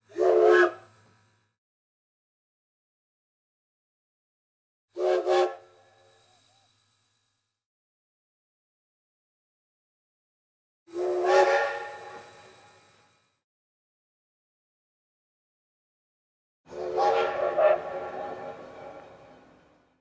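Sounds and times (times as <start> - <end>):
trains: 0.0 - 1.5, 5.0 - 7.5, 10.9 - 13.4, 16.7 - 20.0.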